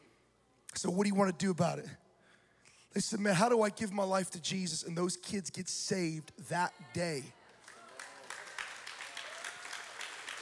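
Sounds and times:
speech: 0.8 - 2.0, 2.9 - 7.4
light polite golf clap applause: 7.5 - 10.4.

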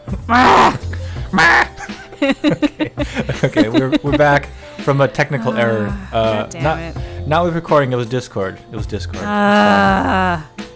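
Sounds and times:
person imitating a bird's squawk: 0.1 - 2.0, 5.3 - 6.8, 9.2 - 10.5
laughter: 0.1 - 6.8
speech: 0.3 - 0.8, 3.4 - 10.5.

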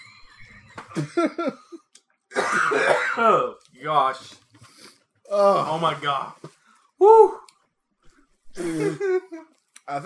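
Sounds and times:
speech: 1.0 - 1.8, 2.6 - 4.4, 5.3 - 7.5, 8.6 - 10.0
person coughing: 2.3 - 3.5.

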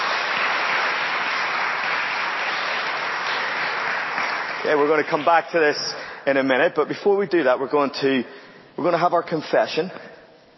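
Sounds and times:
audience applause: 0.0 - 5.8
speech: 4.6 - 10.1.

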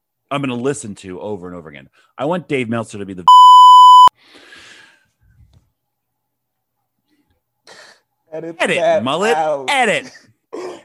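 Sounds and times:
speech: 0.3 - 3.5, 8.4 - 10.6
censor bleep over speech: 3.3 - 4.1.

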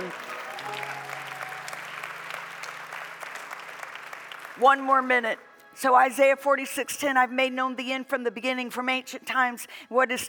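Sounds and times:
audience clapping: 0.0 - 5.4
speech: 4.6 - 10.2.

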